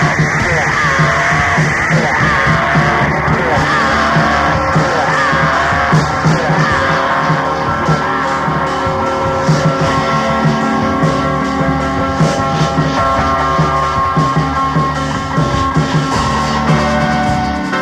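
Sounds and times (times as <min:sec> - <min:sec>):
harsh noise: 0:00.0 - 0:17.8.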